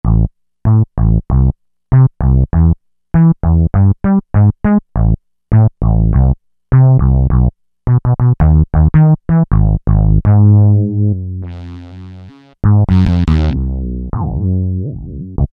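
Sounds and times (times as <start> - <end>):
Roland V-Synth bass: 0.0 - 15.5.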